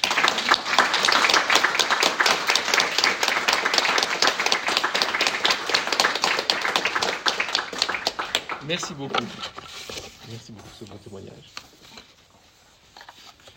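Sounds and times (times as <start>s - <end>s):
audience applause: 0.0s - 9.2s
speech: 8.7s - 9.6s, 10.3s - 11.6s.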